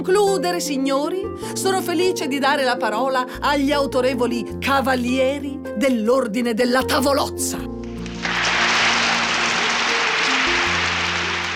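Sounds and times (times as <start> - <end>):
speech: 0.0 - 7.7
audience applause: 8.0 - 11.5.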